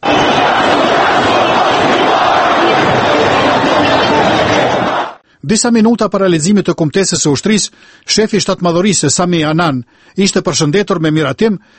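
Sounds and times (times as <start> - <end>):
demonstrators cheering in Tahrir Square, Cairo: 0.0 - 5.2
speech: 5.5 - 11.7.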